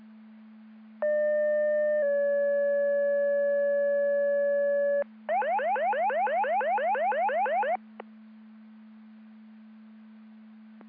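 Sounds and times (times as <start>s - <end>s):
siren: 1.1s - 7.9s.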